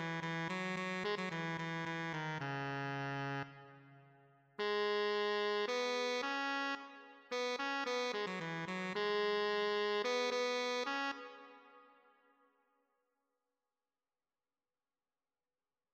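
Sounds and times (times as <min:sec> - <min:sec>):
tenor saxophone: 0:00.0 - 0:12.0.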